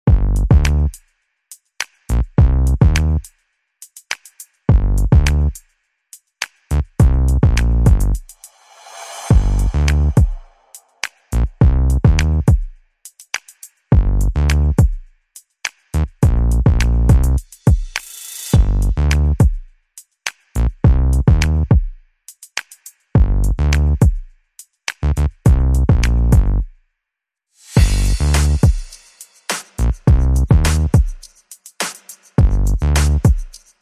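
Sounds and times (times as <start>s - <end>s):
bass: 0.0s - 1.0s, 2.1s - 3.3s, 4.7s - 5.6s, 6.7s - 8.3s, 9.3s - 10.3s, 11.3s - 12.6s, 13.9s - 14.9s, 16.0s - 17.5s, 18.5s - 19.5s, 20.6s - 21.8s, 23.2s - 24.1s, 25.0s - 26.7s, 27.8s - 28.8s, 29.8s - 31.1s, 32.4s - 33.3s
drums: 0.0s - 1.1s, 1.8s - 3.3s, 3.9s - 5.7s, 6.4s - 8.5s, 9.2s - 19.7s, 20.3s - 23.4s, 25.5s - 26.6s, 27.6s - 33.7s.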